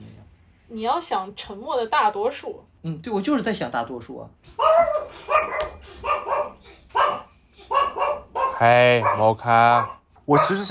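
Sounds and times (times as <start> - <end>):
speech: 0.7 - 7.2, 8.6 - 10.6
dog barking: 4.6 - 10.6.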